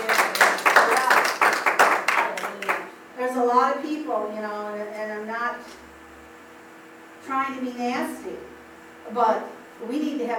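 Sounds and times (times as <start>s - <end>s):
church congregation clapping in a steady rhythmic beat: 0.0s - 3.0s
speech: 4.1s - 4.9s, 7.3s - 8.5s, 9.1s - 10.3s.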